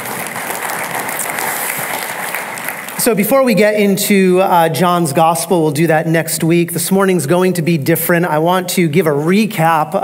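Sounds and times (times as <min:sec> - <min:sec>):
audience clapping: 0:00.0 - 0:03.4
speech: 0:03.0 - 0:10.0.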